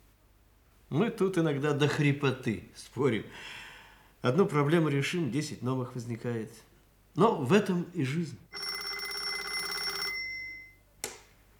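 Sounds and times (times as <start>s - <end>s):
speech: 0.9s - 3.6s, 4.2s - 8.7s
telephone bell ringing: 8.5s - 10.8s.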